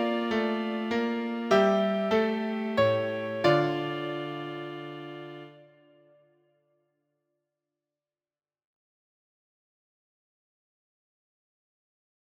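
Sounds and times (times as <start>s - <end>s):
piano: 0.0s - 6.0s.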